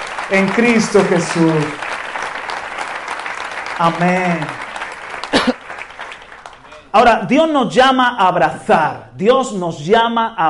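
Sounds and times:
audience applause: 0.0s - 6.9s
speech: 0.3s - 1.8s, 3.8s - 4.7s, 6.9s - 10.4s.

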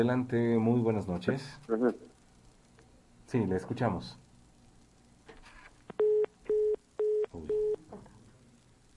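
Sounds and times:
speech: 0.0s - 2.1s, 3.3s - 4.2s
telephone line tones of incoming call: 6.0s - 7.8s.

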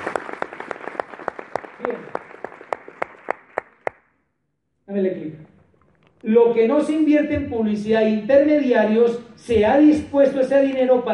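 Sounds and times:
audience applause: 0.0s - 4.0s
speech: 1.8s - 2.2s, 5.0s - 5.5s, 6.2s - 11.1s.

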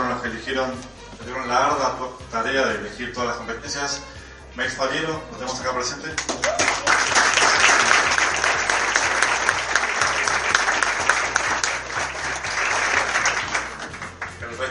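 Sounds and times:
speech: 0.4s - 6.7s
audience applause: 6.2s - 14.4s.

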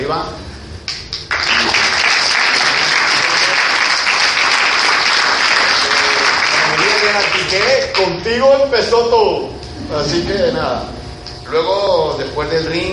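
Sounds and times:
speech: 0.1s - 0.5s, 7.1s - 12.9s
audience applause: 1.1s - 8.1s.

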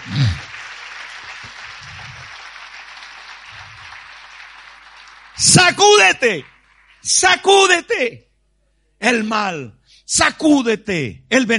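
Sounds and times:
audience applauding: 0.0s - 7.3s
speech: 5.4s - 8.3s, 9.0s - 11.5s.

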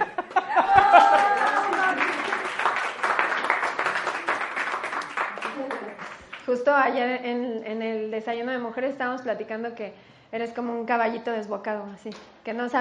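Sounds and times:
voices and laughter: 0.0s - 2.0s
crowd applause: 0.0s - 6.5s
speech: 6.7s - 12.7s.

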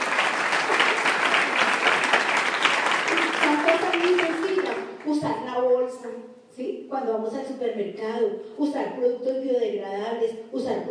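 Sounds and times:
audience applause: 0.0s - 5.0s
speech: 5.1s - 10.8s.

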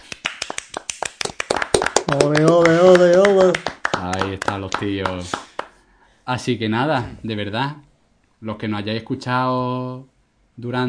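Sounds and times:
small group applauding: 0.0s - 5.8s
speech: 2.1s - 3.2s, 4.5s - 5.4s, 6.3s - 10.8s.

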